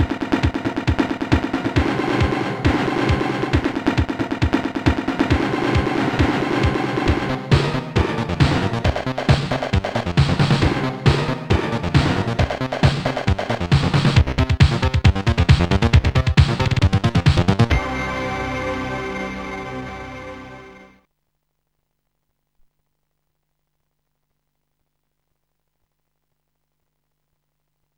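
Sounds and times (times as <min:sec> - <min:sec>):
electronic music: 0:00.0 - 0:21.0.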